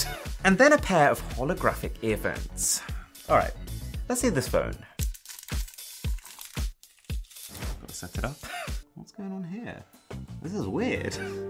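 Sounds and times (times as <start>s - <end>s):
speech: 0.4s - 4.9s, 8.0s - 8.5s, 9.2s - 11.4s
protective plastic film peeling off a charger: 5.0s - 8.4s.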